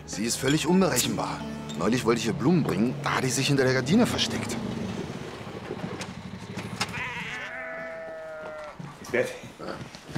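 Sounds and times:
speech: 0.1 - 4.8, 9.1 - 10.1
sheep bleating: 6.8 - 8.9.

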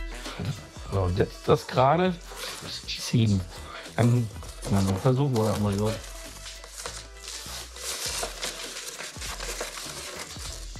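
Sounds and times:
speech: 0.4 - 6.1
plastic foil crinkling as it is cut and torn: 2.3 - 2.8, 4.0 - 10.7.

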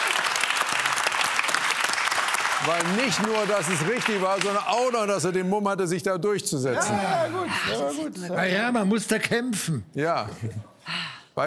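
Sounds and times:
audience applauding loudly: 0.0 - 5.3
speech: 2.6 - 10.7.

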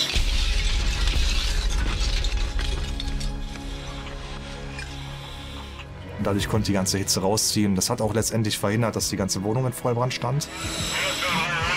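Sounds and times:
firefighters smashing in window glass at a fire-damaged apartment: 0.0 - 4.5
speech: 6.2 - 11.2.

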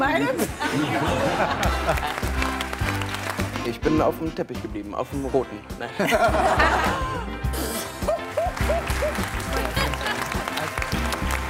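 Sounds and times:
speech: 0.2 - 2.2, 3.7 - 9.8
laughter: 0.2 - 2.5, 5.8 - 11.4
audience applause: 0.7 - 3.8, 7.9 - 11.4.

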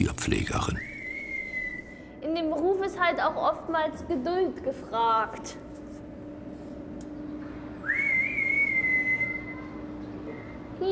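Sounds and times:
speech: 0.0 - 0.9, 2.2 - 5.7
keeper whistling to call an animal: 0.7 - 2.0, 7.8 - 9.6.

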